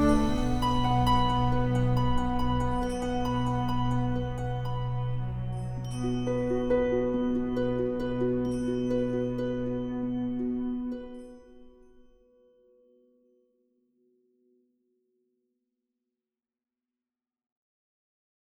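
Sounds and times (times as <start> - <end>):
orchestral main theme music: 0.0 - 11.4.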